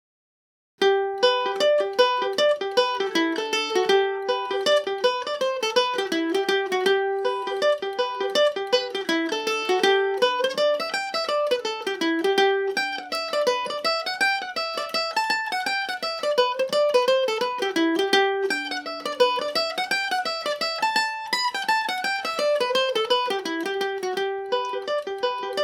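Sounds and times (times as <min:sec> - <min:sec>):
mandolin tune in G major: 0:00.8 - 0:25.6.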